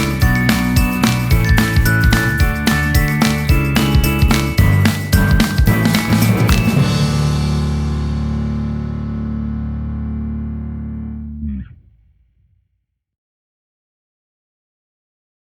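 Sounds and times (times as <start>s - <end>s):
instrumental music: 0.0s - 11.5s.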